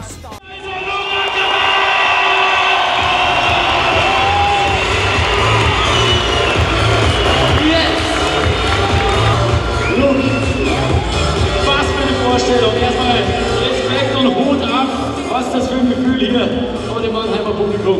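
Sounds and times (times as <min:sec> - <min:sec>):
packed arena crowd roaring and cheering: 0:00.4 - 0:16.9.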